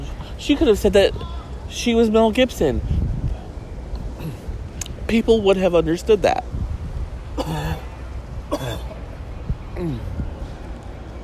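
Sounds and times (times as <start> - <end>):
speech: 0.4 - 3.0, 5.1 - 6.5, 7.4 - 7.9, 9.8 - 10.2
person coughing after something went down the wrong pipe: 7.4 - 7.9, 8.5 - 8.9
throat clearing: 7.4 - 7.9, 8.5 - 8.9.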